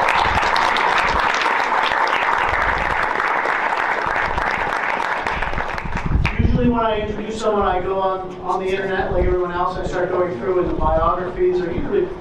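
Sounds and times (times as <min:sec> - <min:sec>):
audience applause: 0:00.0 - 0:06.5
speech: 0:07.0 - 0:12.1.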